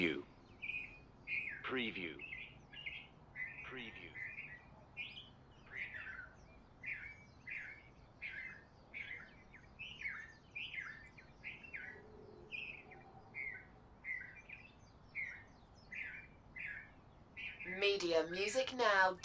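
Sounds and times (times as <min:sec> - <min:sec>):
speech: 0:00.0 - 0:00.3, 0:01.7 - 0:02.3, 0:03.7 - 0:04.2, 0:17.7 - 0:19.2
birds chirping and chattering: 0:00.0 - 0:19.2.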